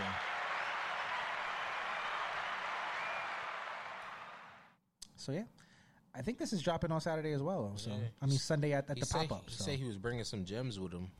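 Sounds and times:
hands clapping: 0.0s - 4.6s
speech: 5.2s - 11.1s.

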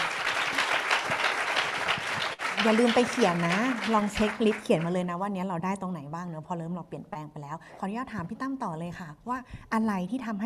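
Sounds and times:
audience applause: 0.0s - 5.0s
speech: 2.6s - 10.4s.

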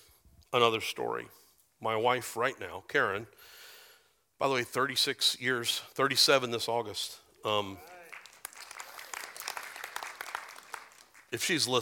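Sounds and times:
speech: 0.5s - 3.6s, 4.4s - 7.9s, 11.3s - 11.7s
audience applause: 7.7s - 11.5s.

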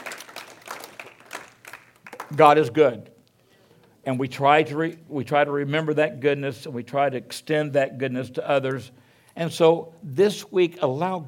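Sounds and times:
audience clapping: 0.0s - 2.5s
speech: 2.3s - 3.1s, 4.0s - 11.2s.

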